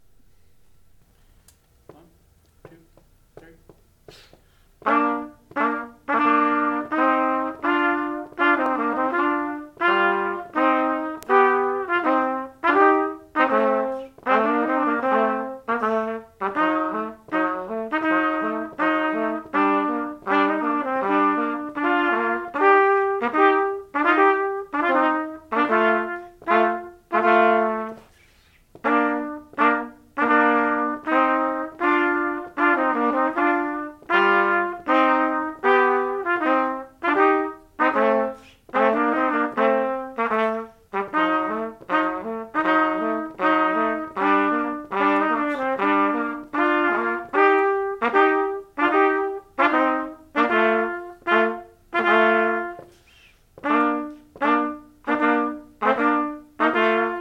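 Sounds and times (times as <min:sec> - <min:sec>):
march duet: 0:00.0 - 0:57.1.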